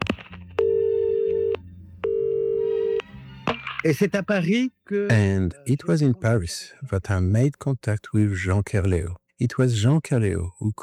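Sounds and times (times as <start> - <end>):
telephone ringing with a steady electronic tone: 0.6 - 3.0
speech: 3.8 - 10.8.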